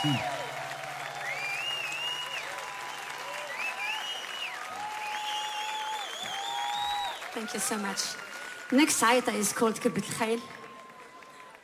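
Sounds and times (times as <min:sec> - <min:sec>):
speech: 0:00.0 - 0:00.3, 0:07.4 - 0:10.6
audience applause: 0:00.0 - 0:11.6.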